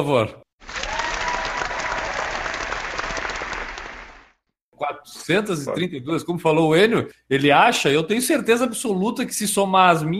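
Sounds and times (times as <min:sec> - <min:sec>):
speech: 0:00.0 - 0:00.4, 0:04.8 - 0:10.1
applause sound effect: 0:00.6 - 0:04.4.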